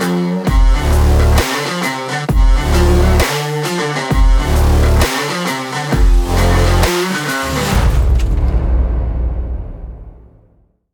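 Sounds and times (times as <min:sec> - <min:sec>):
stylish rock beat for a trailer: 0:00.0 - 0:08.7.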